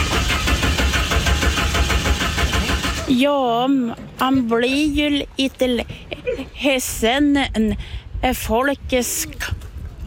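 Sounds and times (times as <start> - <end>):
car engine cranking without catching: 0.0 - 3.3
speech: 3.1 - 10.0.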